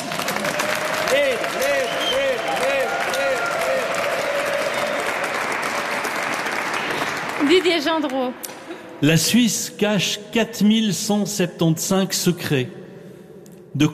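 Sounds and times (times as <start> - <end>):
audience applauding loudly: 0.0 - 8.8
speech: 7.5 - 12.8, 13.8 - 13.9.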